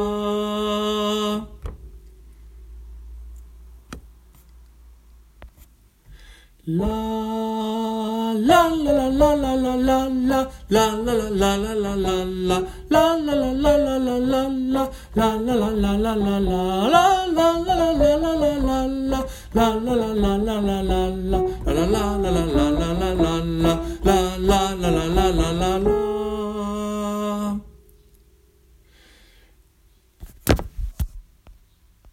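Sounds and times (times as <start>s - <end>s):
soprano singing a Hebrew love song: 0.0s - 1.8s, 6.7s - 27.9s.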